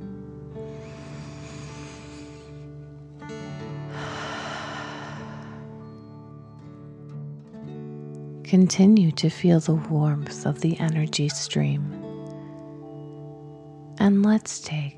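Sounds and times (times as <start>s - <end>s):
deep dragon breath breathing during a guided exercise: 0.6s - 6.2s
speech: 8.5s - 12.0s, 14.0s - 14.9s.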